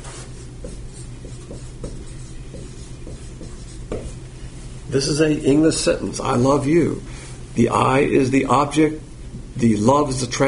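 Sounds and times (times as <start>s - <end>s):
scratchy drawing strokes on a board: 0.0s - 4.2s
steady low hum: 0.0s - 10.4s
speech: 4.9s - 10.4s.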